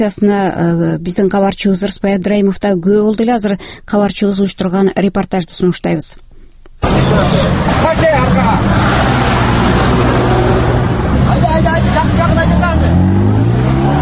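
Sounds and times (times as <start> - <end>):
speech: 0.0 - 6.2
cars and vehicles driving along the reopened Osh–Bishkek road: 6.8 - 14.0.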